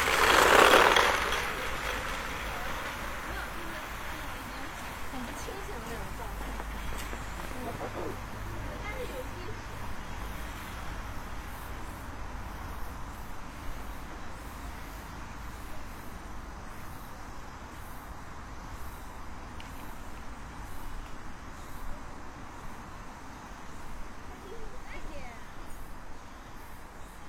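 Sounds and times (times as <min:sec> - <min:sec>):
passing traffic: 0:00.0 - 0:27.2
faint voices on a noon break walk on a cloudy day: 0:00.8 - 0:09.7.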